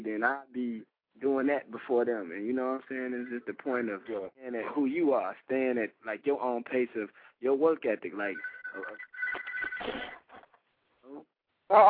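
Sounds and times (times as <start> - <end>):
speech: 0.2 - 10.2, 11.1 - 11.8
phone ringing: 8.2 - 10.1.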